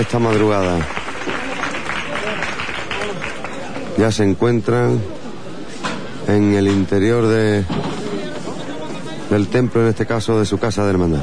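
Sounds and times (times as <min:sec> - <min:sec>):
speech: 0:00.0 - 0:01.0, 0:04.0 - 0:05.2, 0:06.3 - 0:08.0, 0:09.3 - 0:11.2
crowd applauding a religious brotherhood's procession: 0:00.0 - 0:04.2.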